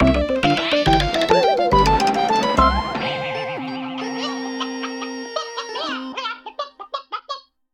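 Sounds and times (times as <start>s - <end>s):
fanfare: 0.3s - 6.3s.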